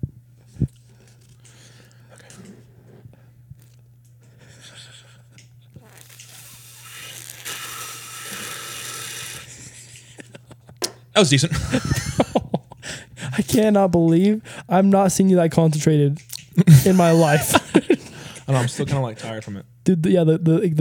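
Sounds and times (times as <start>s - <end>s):
loud sipping of hot chocolate: 5.7s - 9.6s, 16.4s - 17.6s
laughter: 9.5s - 13.4s, 16.6s - 19.5s
speech: 11.2s - 12.2s, 13.5s - 17.6s, 18.5s - 20.7s.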